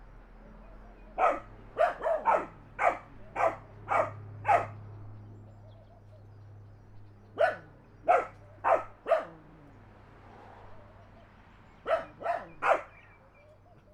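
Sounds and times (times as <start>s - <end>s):
car passing: 0.0s - 5.5s, 7.4s - 13.3s
dogs barking in the country: 1.1s - 4.8s, 7.3s - 9.7s, 11.8s - 13.2s.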